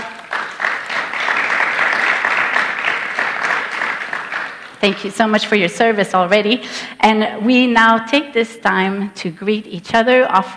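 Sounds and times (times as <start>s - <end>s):
crowd applauding: 0.0s - 5.1s
speech: 4.8s - 10.5s.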